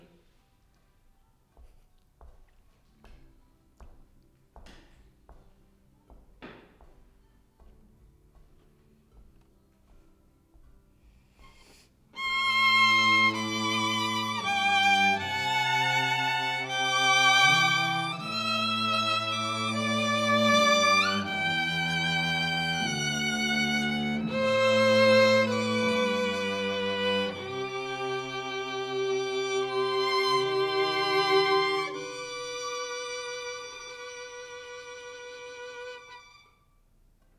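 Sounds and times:
violin: 11.4 - 36.9.

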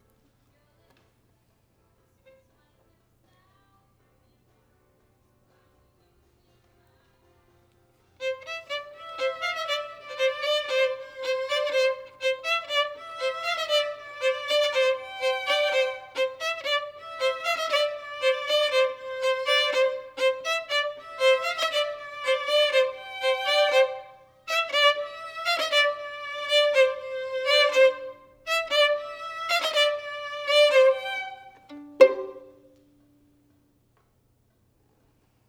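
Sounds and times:
violin: 8.2 - 33.0.

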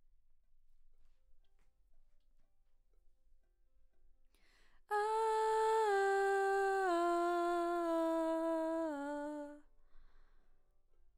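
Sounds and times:
background vocals: 4.9 - 9.6.

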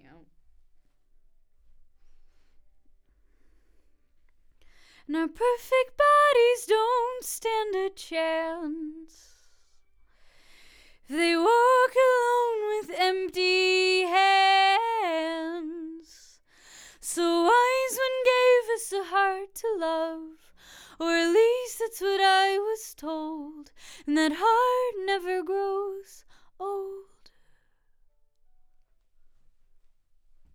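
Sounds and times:
vocals: 4.6 - 27.6.

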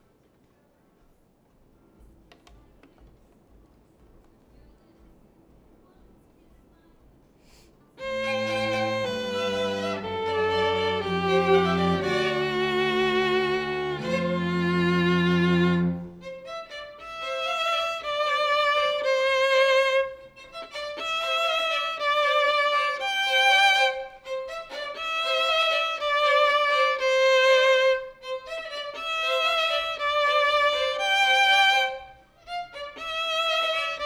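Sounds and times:
violin: 8.0 - 34.0.

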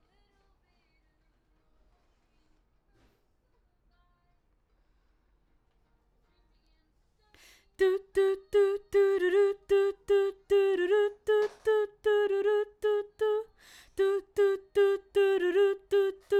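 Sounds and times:
background vocals: 7.4 - 16.3.

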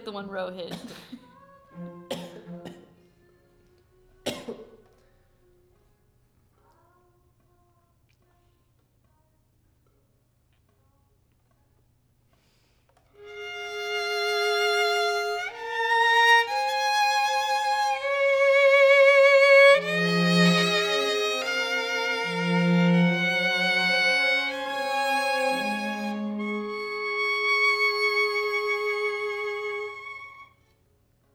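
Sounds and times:
violin: 0.0 - 3.8, 13.2 - 30.8.

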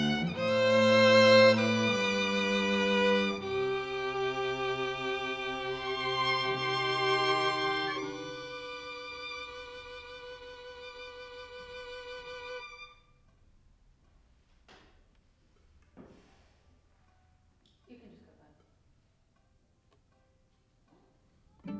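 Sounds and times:
violin: 0.0 - 13.3, 21.6 - 21.7.

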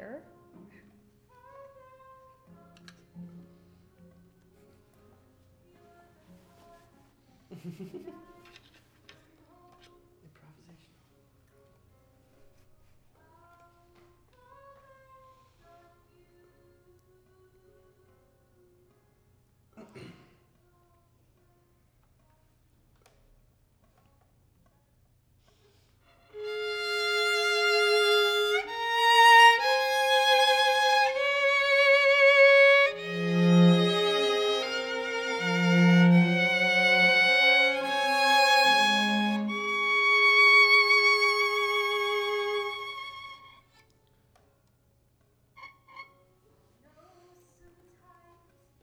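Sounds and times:
violin: 26.0 - 43.9.

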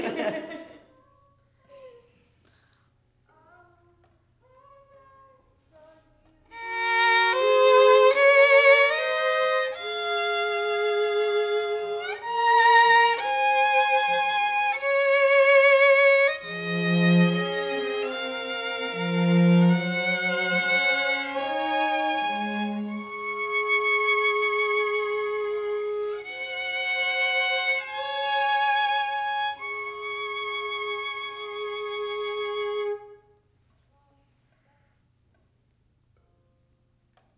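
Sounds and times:
laughter: 0.0 - 0.9
violin: 6.5 - 33.4.

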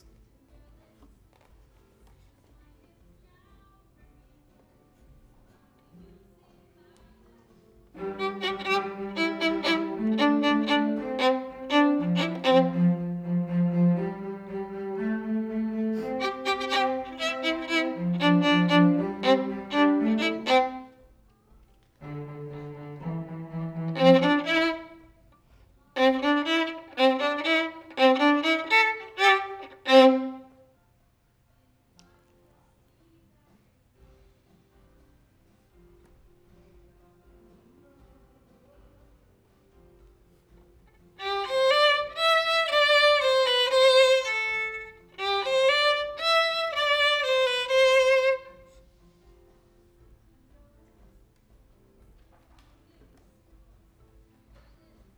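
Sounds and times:
violin: 7.9 - 21.2, 21.8 - 25.3, 25.9 - 30.7, 41.0 - 49.1.

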